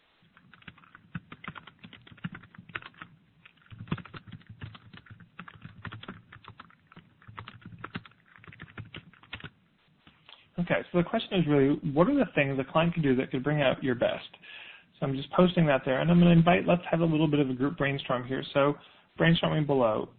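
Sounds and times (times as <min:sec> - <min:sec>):
typing a question on a computer keyboard: 0:00.2 - 0:10.2
speech: 0:10.6 - 0:14.4, 0:15.0 - 0:20.1.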